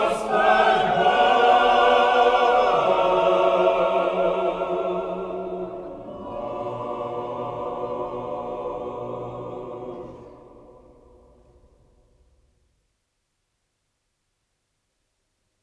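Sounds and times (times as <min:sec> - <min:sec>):
hierarchal choir singing: 0:00.0 - 0:11.4.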